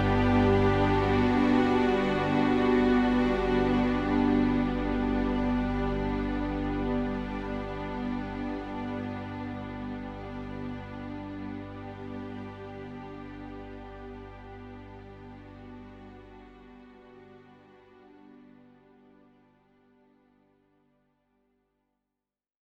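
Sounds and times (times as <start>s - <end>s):
piano mix music: 0.0s - 11.2s.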